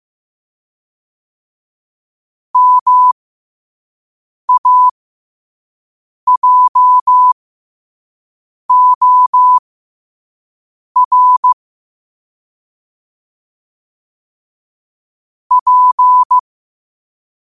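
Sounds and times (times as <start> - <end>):
morse code at 5 wpm: 2.6 - 3.1, 4.5 - 4.9, 6.3 - 7.4, 8.7 - 9.6, 11.0 - 11.6, 15.5 - 16.4.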